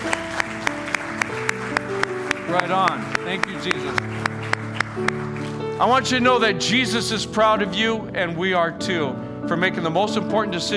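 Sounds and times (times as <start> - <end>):
audience applause: 0.0 - 6.0
speech: 2.5 - 4.3, 5.0 - 10.7.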